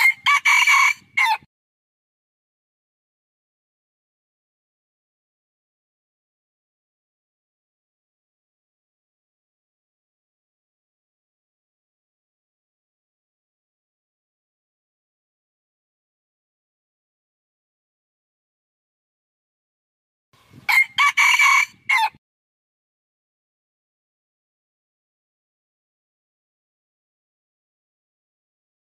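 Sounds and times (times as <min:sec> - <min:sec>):
red junglefowl crowing: 0:00.0 - 0:01.5, 0:20.7 - 0:22.2.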